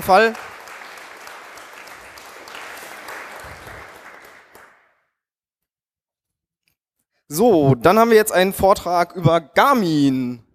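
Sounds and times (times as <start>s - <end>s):
speech: 0.0s - 0.5s, 7.3s - 10.4s
audience applause: 0.0s - 4.9s.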